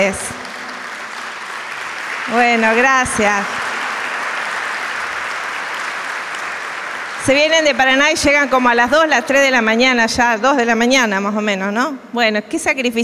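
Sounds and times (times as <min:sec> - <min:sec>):
speech: 0:00.0 - 0:00.4, 0:02.3 - 0:03.6, 0:07.2 - 0:13.0
audience applause: 0:00.0 - 0:09.6.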